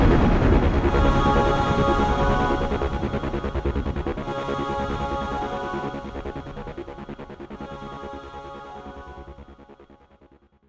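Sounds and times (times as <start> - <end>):
acid electronic music: 0.0 - 10.3.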